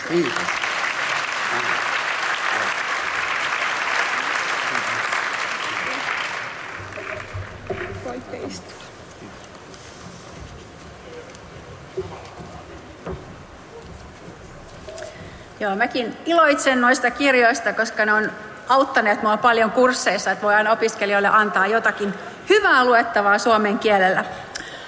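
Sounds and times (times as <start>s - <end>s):
audience applause: 0.0s - 8.9s
speech: 0.1s - 0.5s, 15.6s - 24.4s.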